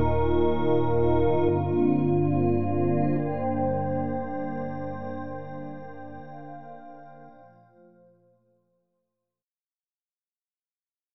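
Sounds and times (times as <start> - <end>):
piano: 0.0 - 8.2
ambient music: 0.0 - 8.4.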